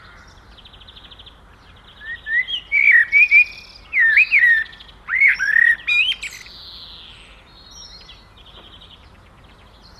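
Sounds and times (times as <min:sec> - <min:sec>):
common blackbird singing: 0:00.0 - 0:09.9.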